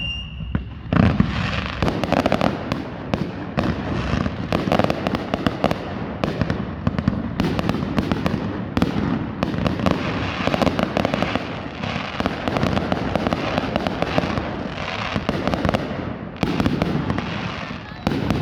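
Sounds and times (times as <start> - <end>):
high tone: 0.0 - 0.7
fireworks bursts at the 2022 NC State Fair: 0.0 - 18.4.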